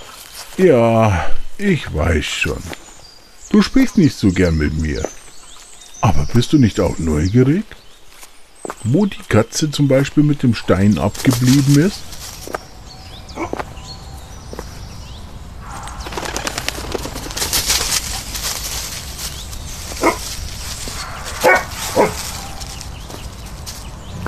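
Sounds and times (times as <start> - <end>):
speech: 0.6 - 2.9, 3.5 - 5.2, 6.1 - 7.8, 8.8 - 12.6
dog barking: 13.3 - 13.7, 20.0 - 20.3, 20.9 - 22.9.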